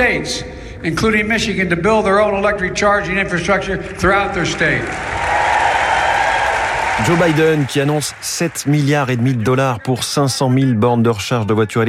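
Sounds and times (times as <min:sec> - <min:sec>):
speech: 0:00.0 - 0:05.4, 0:07.0 - 0:11.8
audience applause at a speech: 0:03.9 - 0:09.8.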